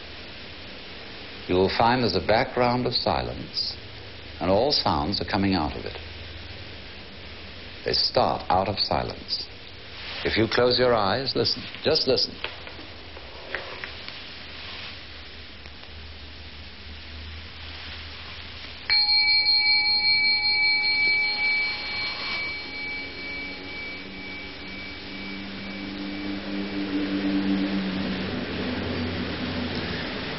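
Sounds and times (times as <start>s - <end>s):
speech: 1.5s - 3.8s, 4.4s - 6.1s, 7.8s - 9.5s, 10.2s - 12.6s
bell ringing: 18.9s - 27.6s
low steady rumble: 21.4s - 30.3s.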